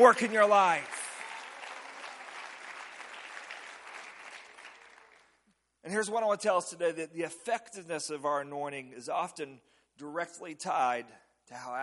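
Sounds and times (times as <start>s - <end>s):
speech: 0.0s - 1.0s, 5.9s - 11.8s
audience clapping hands: 0.0s - 5.5s.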